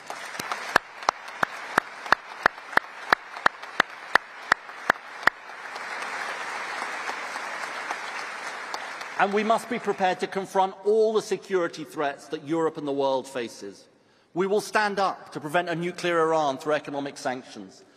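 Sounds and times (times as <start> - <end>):
audience applause: 0.0 - 10.3
loud evenly spaced claps in a steady rhythm: 0.0 - 10.5
speech: 9.2 - 17.9.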